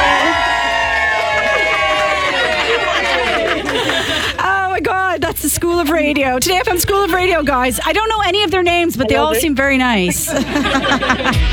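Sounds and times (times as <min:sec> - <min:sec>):
studio audience cheering: 0:00.0 - 0:04.4
laughter: 0:00.0 - 0:04.7, 0:09.0 - 0:11.5
speech: 0:05.5 - 0:11.5.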